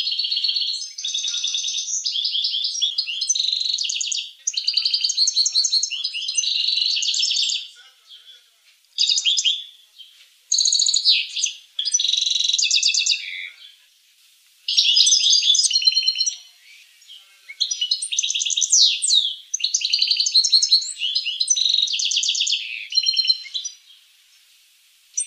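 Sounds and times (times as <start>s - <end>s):
finch song: 0.0s - 13.8s, 14.7s - 25.2s.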